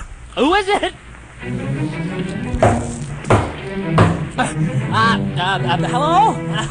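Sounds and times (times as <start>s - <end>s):
speech: 0.4s - 1.1s, 3.8s - 6.6s
heavy knocking on a door: 2.6s - 4.3s.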